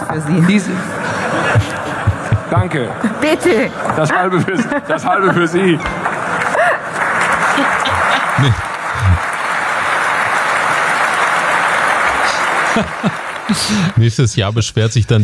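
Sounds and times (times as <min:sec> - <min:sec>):
speech: 0:00.1 - 0:01.8, 0:02.5 - 0:06.0, 0:08.4 - 0:08.7, 0:12.8 - 0:15.2
audience applause: 0:00.5 - 0:02.8, 0:05.2 - 0:14.4
laughter: 0:00.6 - 0:15.2.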